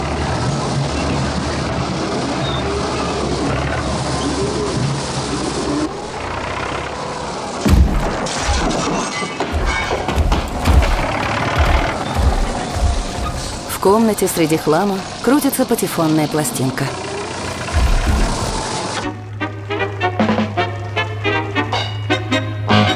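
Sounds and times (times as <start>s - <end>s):
excavator bucket demolishing old building: 0.0s - 22.8s
cast-iron wrecking ball demolishing old building: 3.8s - 15.7s, 16.6s - 19.2s
speech: 13.9s - 17.1s.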